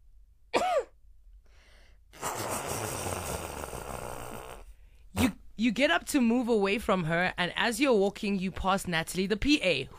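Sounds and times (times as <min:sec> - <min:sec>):
person sneezing: 0:00.6 - 0:01.0, 0:02.1 - 0:04.6
nose blowing: 0:02.1 - 0:04.8
speech: 0:05.6 - 0:09.9.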